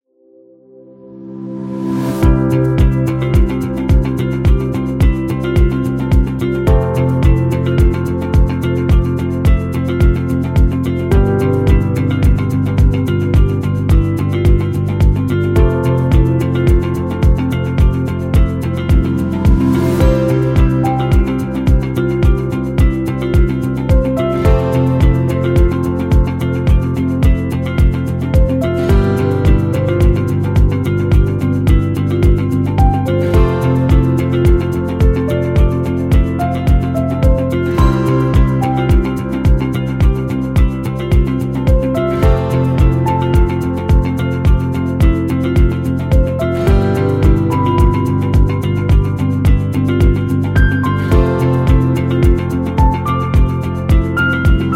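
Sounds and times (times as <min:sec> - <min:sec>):
calm motivational music: 0:00.2 - 0:54.7.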